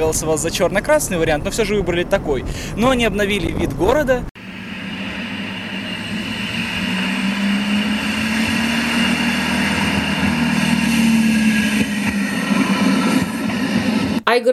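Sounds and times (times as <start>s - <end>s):
speech: 0.0s - 4.3s, 14.4s - 14.5s
tram rumbling along metal rails: 0.0s - 14.2s
tram low droning hum: 4.4s - 14.2s.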